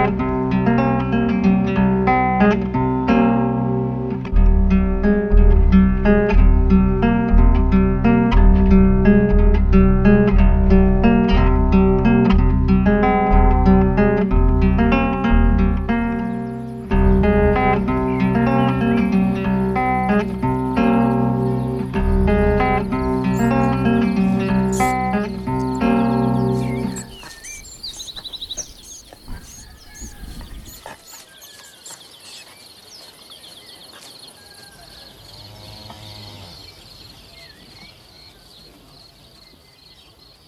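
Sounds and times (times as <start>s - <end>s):
strange reggae music: 0.0s - 29.8s.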